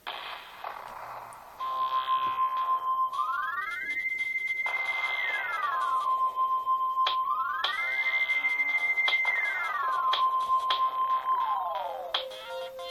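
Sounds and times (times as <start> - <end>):
Samsung SGH-E700 ringtone: 1.6 - 12.8.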